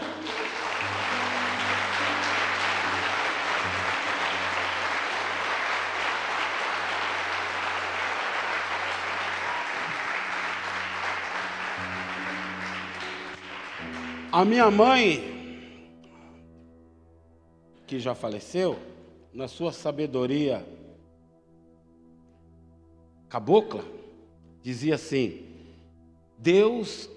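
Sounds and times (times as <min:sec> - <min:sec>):
audience applauding: 0:00.0 - 0:14.8
speech: 0:14.3 - 0:15.3, 0:18.0 - 0:20.8, 0:23.3 - 0:24.0, 0:24.6 - 0:25.5, 0:26.4 - 0:27.1.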